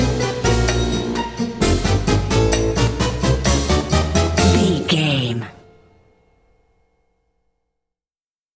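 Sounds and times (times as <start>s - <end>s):
silly goofy comical circus music: 0.0s - 5.6s.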